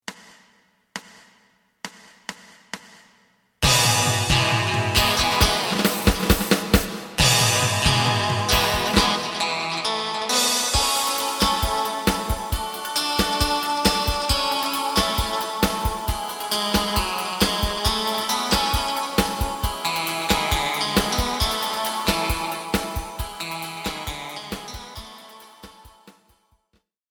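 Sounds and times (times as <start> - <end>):
bass: 3.6 - 25.0.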